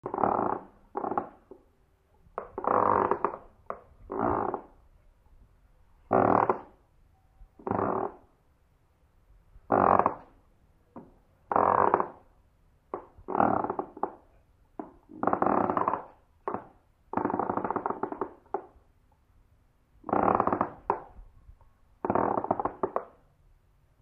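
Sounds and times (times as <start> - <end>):
floorboard creak: 0.0 - 1.7, 2.3 - 4.9, 6.0 - 6.8, 7.6 - 8.4, 9.6 - 10.4, 11.0 - 12.3, 12.9 - 18.8, 20.0 - 21.4, 22.0 - 23.2.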